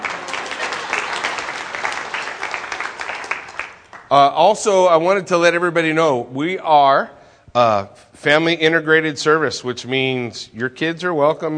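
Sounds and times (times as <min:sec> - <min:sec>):
audience clapping for a birthday: 0:00.0 - 0:04.6
speech: 0:04.1 - 0:11.5.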